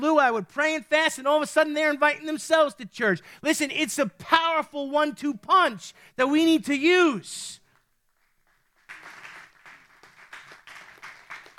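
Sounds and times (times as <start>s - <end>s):
speech: 0.0s - 7.6s
audience clapping: 8.1s - 11.5s.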